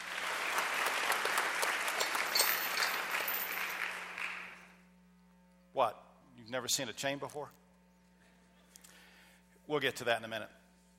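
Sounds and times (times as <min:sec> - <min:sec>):
audience applauding the choir: 0:00.0 - 0:04.7
speech: 0:05.8 - 0:07.6, 0:09.7 - 0:10.6.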